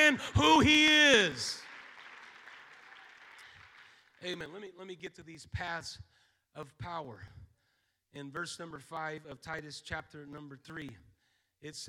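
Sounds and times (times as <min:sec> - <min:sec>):
audience clapping hands: 0:00.0 - 0:04.5
speech: 0:00.1 - 0:01.6, 0:04.2 - 0:07.4, 0:08.1 - 0:11.8.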